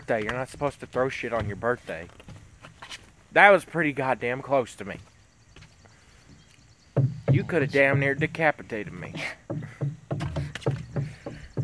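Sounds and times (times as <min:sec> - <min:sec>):
speech: 0:00.1 - 0:02.2, 0:03.3 - 0:05.1, 0:07.0 - 0:09.8
knocking on wood: 0:07.0 - 0:08.1, 0:09.5 - 0:11.6.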